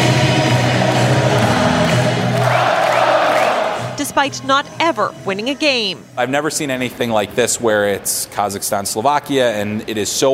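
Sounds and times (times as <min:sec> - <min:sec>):
hockey crowd chanting and singing: 0:00.0 - 0:06.3
speech: 0:04.2 - 0:10.3.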